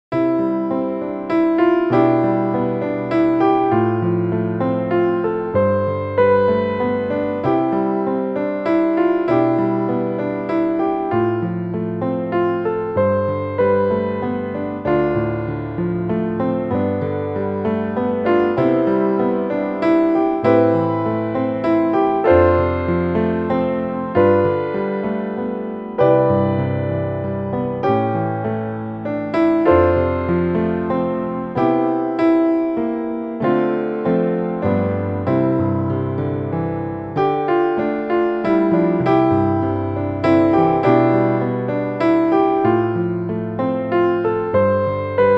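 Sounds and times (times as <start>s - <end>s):
piano: 0.0s - 45.3s.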